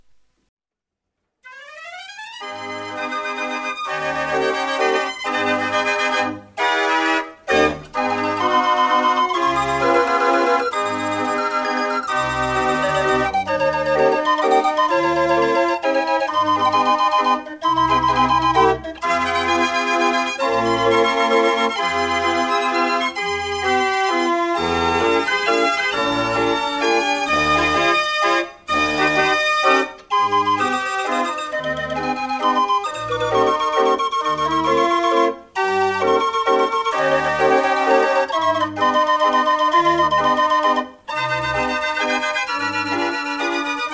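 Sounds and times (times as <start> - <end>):
Dutch street barrel organ playing: 1.4 - 43.9.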